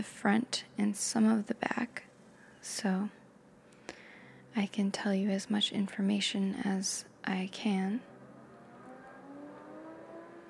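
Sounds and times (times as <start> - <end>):
speech: 0.0 - 3.2, 4.6 - 8.1
motorcycle or car revving in the background: 8.0 - 10.4.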